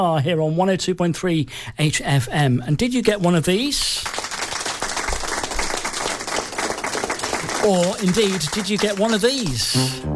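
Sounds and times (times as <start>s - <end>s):
speech: 0.0s - 4.2s, 7.6s - 10.1s
crowd applause: 4.0s - 9.6s.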